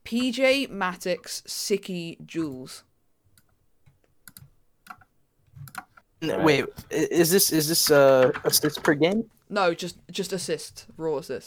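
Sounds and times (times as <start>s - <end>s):
speech: 0.1s - 2.9s, 6.2s - 11.4s
typing a message on a computer keyboard: 3.3s - 6.1s, 6.7s - 9.2s.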